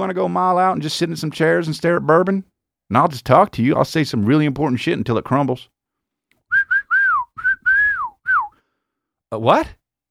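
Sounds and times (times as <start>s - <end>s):
speech: 0.0s - 5.7s, 9.3s - 9.8s
person whistling a short tune: 6.5s - 8.6s.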